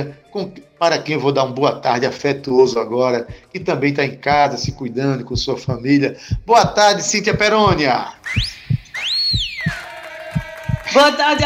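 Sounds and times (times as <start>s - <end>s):
speech: 0.0s - 8.6s, 10.9s - 11.4s
heartbeat sound effect thumping: 3.2s - 11.4s
sliding whistle: 8.2s - 9.9s.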